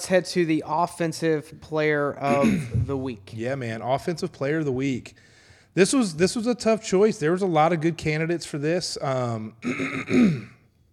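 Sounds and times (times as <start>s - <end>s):
speech: 0.0s - 10.6s
throat clearing: 2.3s - 3.0s, 9.6s - 10.7s.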